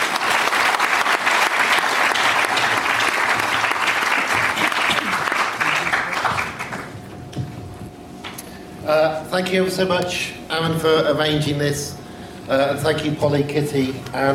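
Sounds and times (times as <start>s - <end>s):
audience applause welcoming speakers: 0.0s - 7.0s
speech: 8.9s - 14.3s.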